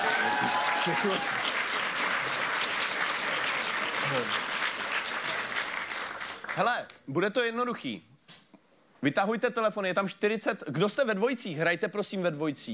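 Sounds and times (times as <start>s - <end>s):
audience applause: 0.0s - 6.7s
speech: 0.8s - 1.5s, 4.1s - 4.5s, 6.6s - 8.1s, 9.0s - 12.7s.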